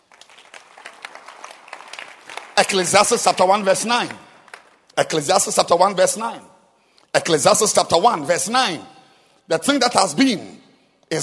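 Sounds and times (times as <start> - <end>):
crowd clapping: 0.0 - 5.0
speech: 2.6 - 4.3, 5.0 - 6.5, 7.1 - 8.9, 9.5 - 11.2.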